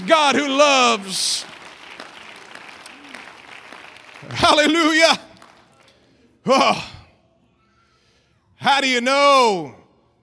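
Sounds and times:
audience clapping hands: 0.0 - 5.9
speech: 0.1 - 1.5, 4.2 - 5.3, 6.4 - 7.0, 8.6 - 9.8.

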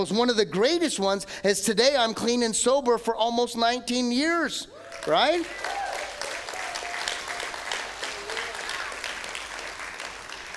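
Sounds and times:
speech: 0.0 - 5.8
audience applause: 4.8 - 10.5.

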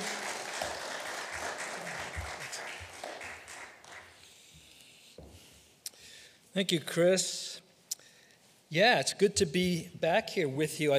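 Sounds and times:
church congregation applauding to welcome a guest speaker: 0.0 - 4.4
speech: 6.6 - 7.5, 8.7 - 10.9.

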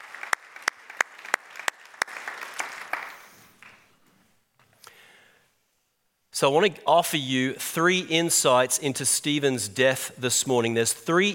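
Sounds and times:
audience hand clapping: 0.0 - 3.9
speech: 6.4 - 11.3.

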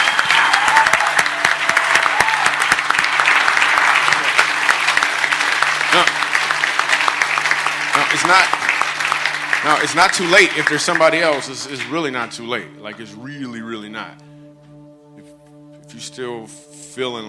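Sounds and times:
audience applause: 0.0 - 12.2
speech: 8.1 - 8.6, 9.6 - 14.3, 16.0 - 17.2.

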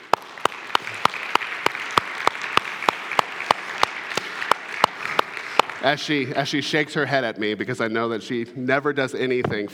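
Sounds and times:
audience applause: 0.0 - 6.4
speech: 5.8 - 9.7.

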